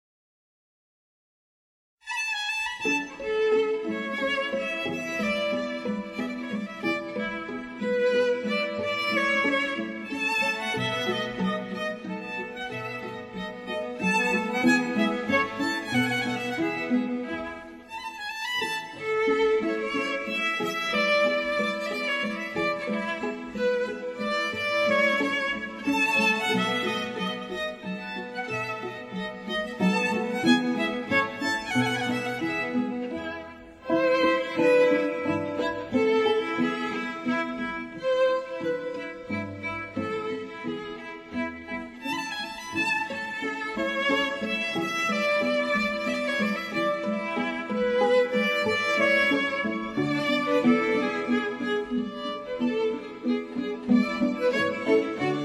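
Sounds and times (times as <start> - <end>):
string quintet playing a minuet: 2.1 - 55.4.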